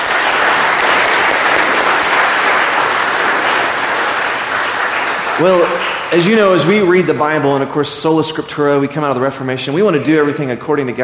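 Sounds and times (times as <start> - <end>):
audience applause: 0.0 - 7.4
speech: 5.4 - 11.0.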